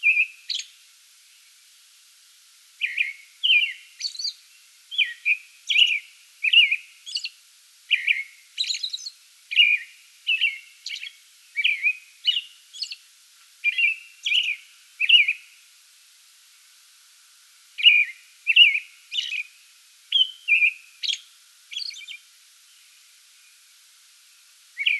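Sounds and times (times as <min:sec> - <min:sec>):
American robin song: 0:00.0 - 0:00.8, 0:02.8 - 0:13.0, 0:13.6 - 0:15.5, 0:17.8 - 0:19.5, 0:20.1 - 0:22.2, 0:24.8 - 0:24.9.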